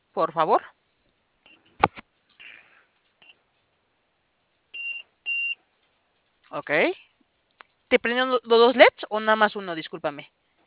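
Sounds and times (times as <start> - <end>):
speech: 0.2 - 0.8, 6.5 - 7.0, 7.9 - 10.4
electronic keypad beeps while entering code: 4.8 - 5.6.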